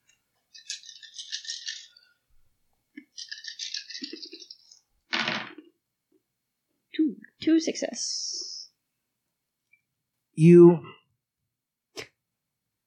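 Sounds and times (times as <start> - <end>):
dice rattling when shaken: 0.5 - 2.0, 3.0 - 5.6
speech: 7.5 - 8.2, 10.4 - 11.0.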